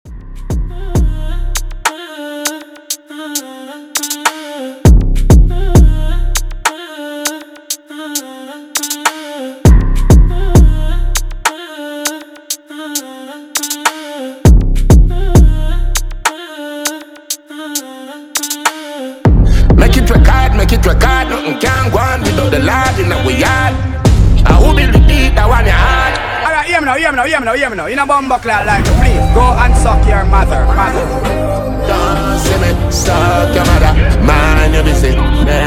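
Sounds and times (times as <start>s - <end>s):
a cappella singing: 0.0s - 26.8s, 28.0s - 35.6s.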